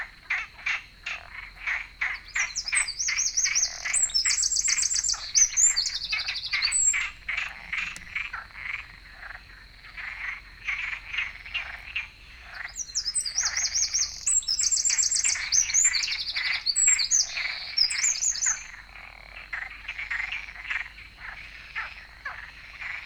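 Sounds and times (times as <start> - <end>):
frogs croaking: 0.0 - 23.0
Eurasian wren singing: 1.6 - 8.4, 11.1 - 18.8.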